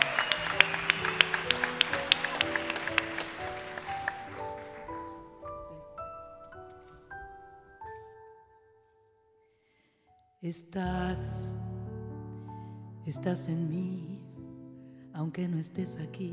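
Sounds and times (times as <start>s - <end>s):
audience applause: 0.0s - 5.5s
stepwise rising sequence of bright musical notes: 0.0s - 5.5s
speech: 10.4s - 11.7s, 13.0s - 14.2s, 15.2s - 16.3s.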